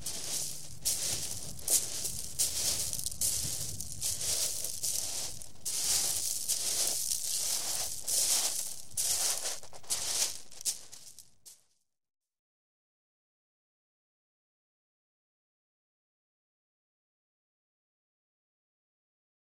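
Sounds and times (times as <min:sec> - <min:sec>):
footsteps in shingle: 0:00.0 - 0:11.6.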